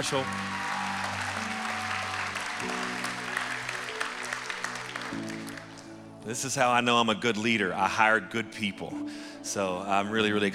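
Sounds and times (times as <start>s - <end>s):
speech: 0.0s - 0.5s, 2.6s - 2.8s, 6.2s - 10.5s
audience applause: 0.0s - 6.0s.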